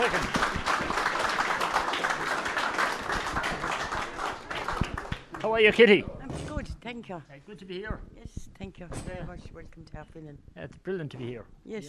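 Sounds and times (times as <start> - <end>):
audience round of applause: 0.0 - 5.9
speech: 5.6 - 6.2, 6.9 - 11.8.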